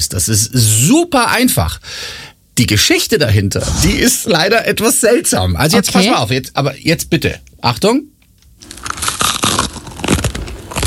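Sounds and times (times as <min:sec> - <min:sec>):
speech: 0:00.0 - 0:09.0
crunchy chewing of a breakfast food: 0:08.6 - 0:10.8.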